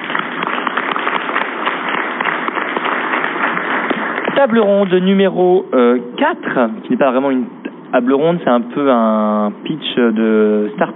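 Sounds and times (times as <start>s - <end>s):
audience applause: 0.0s - 5.1s
speech: 4.4s - 10.9s.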